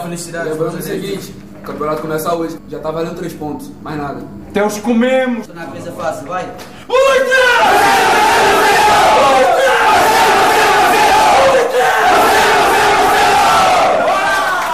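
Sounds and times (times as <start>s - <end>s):
speech: 0.1s - 10.4s
sports team shouting pre-match battle cry: 6.9s - 14.7s.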